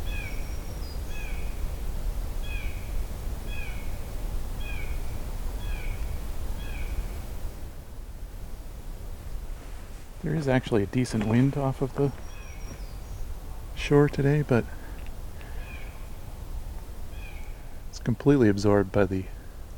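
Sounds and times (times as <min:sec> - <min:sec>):
blue jay calls echoing: 0:00.1 - 0:01.6, 0:02.4 - 0:04.0, 0:04.6 - 0:07.2, 0:12.1 - 0:13.7, 0:14.3 - 0:16.3, 0:17.1 - 0:17.9
speech: 0:10.3 - 0:12.3, 0:13.8 - 0:14.8, 0:18.1 - 0:19.4.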